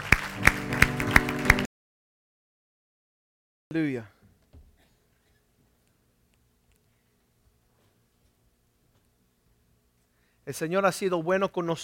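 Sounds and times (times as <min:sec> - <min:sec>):
audience applause: 0:00.0 - 0:01.7
speech: 0:03.7 - 0:04.2, 0:10.5 - 0:11.8.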